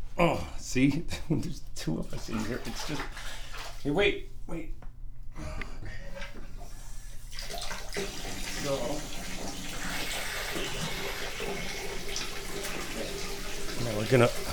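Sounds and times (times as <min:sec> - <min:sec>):
speech: 0:00.2 - 0:04.9, 0:13.8 - 0:14.5
water from a tap running into a bath: 0:01.8 - 0:04.1, 0:06.2 - 0:14.5.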